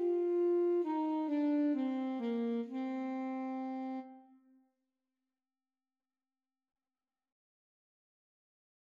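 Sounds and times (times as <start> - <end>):
clarinet: 0.0 - 4.5
saxophone: 0.0 - 4.5.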